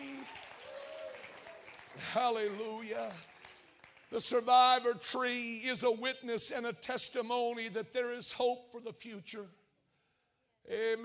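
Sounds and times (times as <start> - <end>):
crowd clapping: 0.0 - 4.9
speech: 2.0 - 3.3, 4.1 - 9.6, 10.6 - 11.0.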